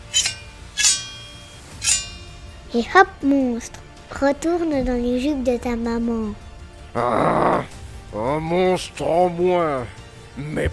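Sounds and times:
sword blows striking during a fight with a monster: 0.0s - 2.4s
speech: 2.7s - 10.7s.

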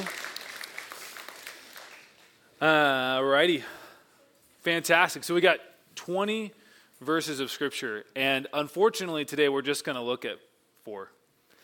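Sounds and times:
applause: 0.0s - 2.4s
speech: 2.6s - 3.8s, 4.6s - 11.2s.

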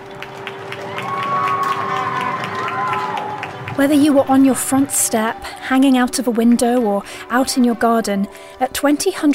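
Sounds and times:
crowd clapping in the street: 0.0s - 6.8s
voices whooping and cheering: 0.7s - 6.0s
speech: 3.8s - 9.3s.

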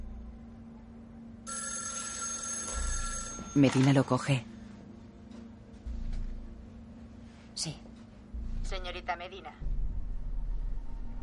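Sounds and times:
low hum: 0.0s - 1.5s, 4.3s - 11.2s
telephone bell ringing in a scene from the 2016 thriller film The Accountant: 1.5s - 4.0s
speech: 3.6s - 4.5s.

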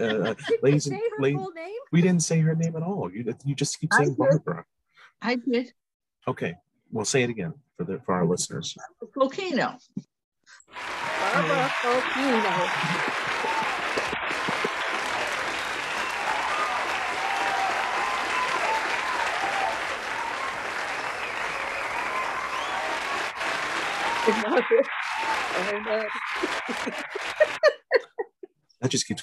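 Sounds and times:
audience applause: 0.0s - 3.0s, 10.7s - 27.8s
people chuckling: 0.0s - 4.6s, 11.1s - 15.0s, 24.1s - 25.1s, 26.0s - 29.2s
speech: 0.0s - 10.1s, 10.7s - 13.3s, 24.2s - 27.6s, 28.8s - 29.2s.

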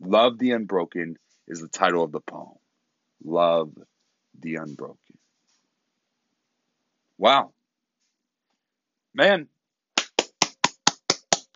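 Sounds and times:
speech: 0.1s - 2.6s, 3.2s - 5.2s, 7.2s - 7.6s, 9.2s - 9.5s
single person clapping hands: 10.0s - 11.5s.

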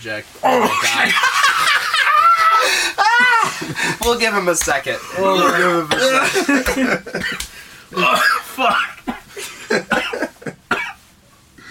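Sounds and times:
speech: 0.0s - 1.9s, 2.6s - 8.9s
laughter: 0.6s - 4.1s, 5.0s - 7.5s
man coughing hard: 5.2s - 11.0s.

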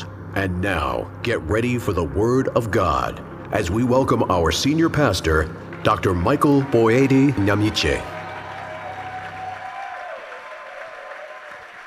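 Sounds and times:
speech: 0.4s - 8.2s
church congregation clapping during a service: 5.3s - 11.8s.

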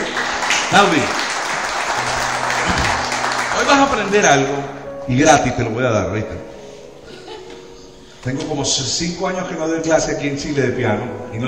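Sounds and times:
audience applause: 0.0s - 4.7s
speech: 0.7s - 1.2s, 3.6s - 6.5s, 8.2s - 11.4s.

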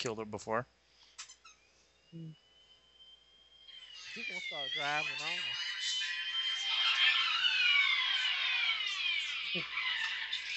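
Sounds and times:
speech: 0.0s - 0.8s, 2.1s - 2.4s, 4.2s - 5.8s, 9.5s - 9.8s
police car sirens: 3.7s - 10.5s.

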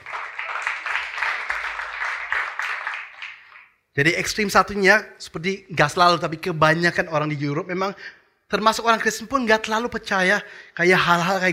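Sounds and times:
audience applause: 0.0s - 3.8s
speech: 4.0s - 11.5s.

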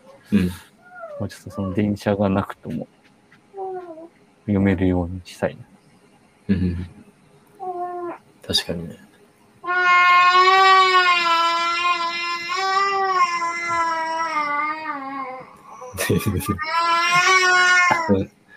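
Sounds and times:
speech: 0.3s - 3.0s, 4.5s - 5.7s, 6.5s - 7.0s, 8.5s - 9.0s, 16.1s - 17.3s, 18.1s - 18.4s
baby crying in long wails: 0.9s - 2.0s, 9.6s - 18.3s.

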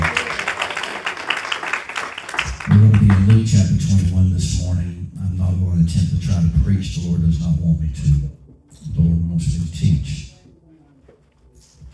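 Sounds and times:
audience hand clapping: 0.0s - 3.7s
speech: 3.5s - 4.9s, 5.5s - 10.3s.

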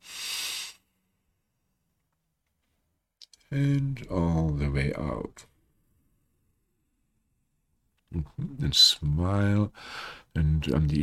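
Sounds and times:
deep inhale during a guided meditation: 0.0s - 0.8s, 9.8s - 10.3s
speech: 3.5s - 5.5s, 8.2s - 11.0s.

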